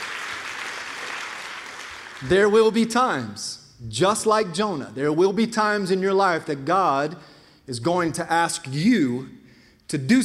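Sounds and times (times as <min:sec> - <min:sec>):
audience clapping: 0:00.0 - 0:02.6
speech: 0:02.2 - 0:10.2.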